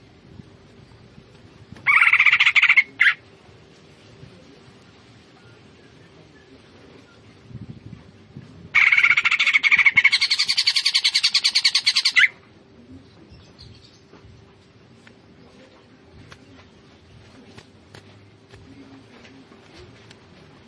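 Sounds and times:
Greater green leafbird singing fast chattering notes: 0:01.8 - 0:03.2, 0:08.8 - 0:12.4.

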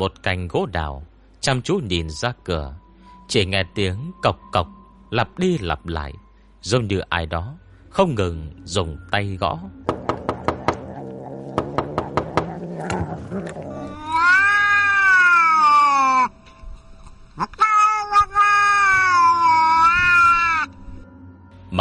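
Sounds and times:
speech: 0:00.0 - 0:10.0
wild cat howling: 0:10.2 - 0:16.3, 0:17.4 - 0:20.8.

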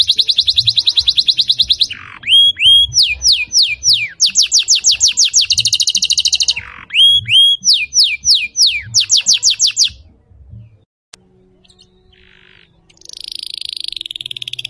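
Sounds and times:
lovebird chatter in konslet song style: 0:00.0 - 0:10.0, 0:11.6 - 0:14.6.

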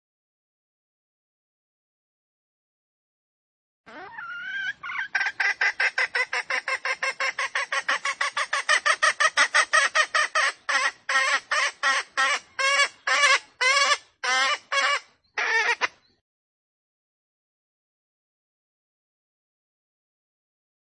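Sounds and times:
junglefowl hen clucks: 0:03.9 - 0:16.0.

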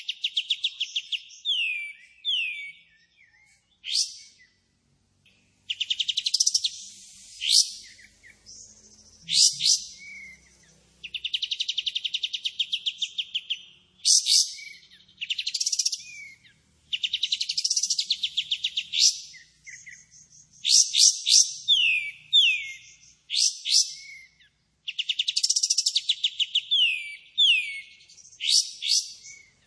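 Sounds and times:
Pied Triller singing rapid trills, sharp upswept notes and a thin whistle: 0:00.0 - 0:04.5, 0:05.7 - 0:29.6.

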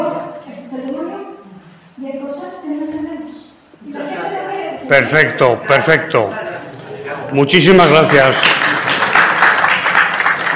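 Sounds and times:
speech: 0:04.9 - 0:06.4, 0:07.3 - 0:08.8
audience applause: 0:07.8 - 0:10.5.

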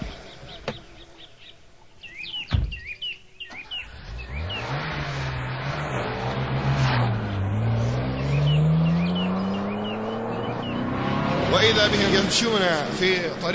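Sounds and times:
birds chirping: 0:00.0 - 0:13.5
sharp thump: 0:02.5 - 0:02.9
car engine revving and accelerating: 0:03.5 - 0:13.5
speech: 0:11.7 - 0:13.5.

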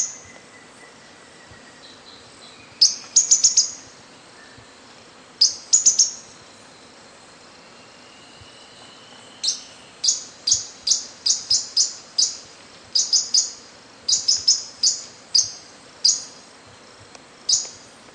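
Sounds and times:
bird chirping: 0:00.0 - 0:18.0.

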